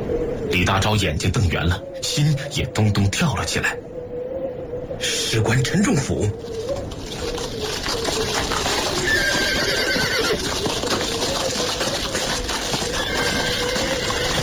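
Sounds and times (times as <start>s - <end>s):
speech: 0.1s - 3.9s, 5.0s - 6.7s
horse hooves clip-clopping: 6.4s - 14.4s
horse-drawn carriage wheels rumbling: 6.4s - 14.4s
horse whinnying: 8.2s - 14.4s.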